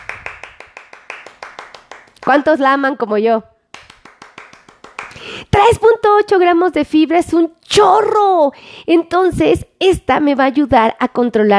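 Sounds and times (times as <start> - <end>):
applause: 0.0 - 2.6, 3.7 - 5.4
speech: 2.3 - 3.5, 5.7 - 11.5.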